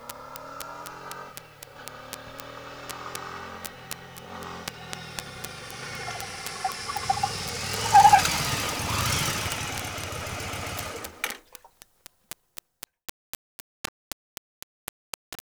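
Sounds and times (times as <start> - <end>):
Yamaha XVS 1100 Dragstar motorcycle engine: 0.0 - 11.7.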